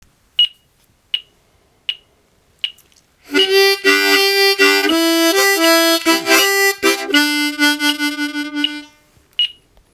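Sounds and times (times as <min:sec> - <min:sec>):
vamping turnaround music: 0:03.3 - 0:09.0.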